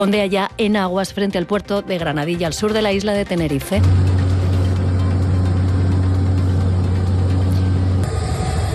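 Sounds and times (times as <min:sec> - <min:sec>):
speech: 0:00.0 - 0:04.2
helicopters flying over the area: 0:03.8 - 0:08.7.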